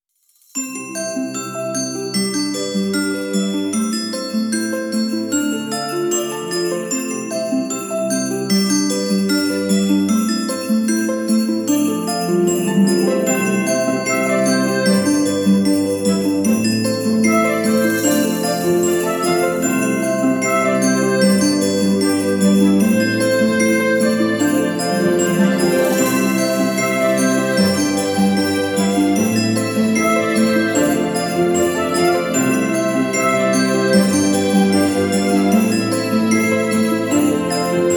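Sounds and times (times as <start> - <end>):
Christmas bells: 0.5 - 37.9
strings playing: 17.3 - 37.9.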